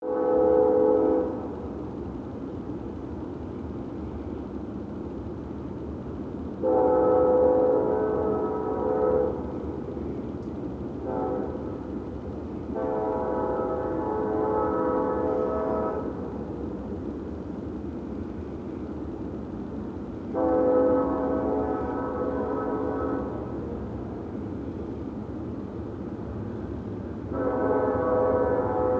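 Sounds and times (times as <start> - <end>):
train horn: 0.0 - 1.6, 6.6 - 9.6, 11.0 - 11.8, 12.7 - 16.3, 20.3 - 23.8, 27.3 - 28.9.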